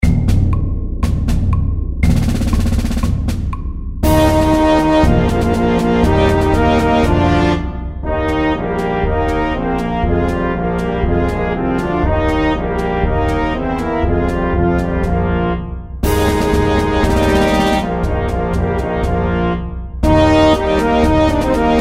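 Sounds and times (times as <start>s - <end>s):
march music: 0.0s - 21.7s
fanfare: 4.0s - 21.7s.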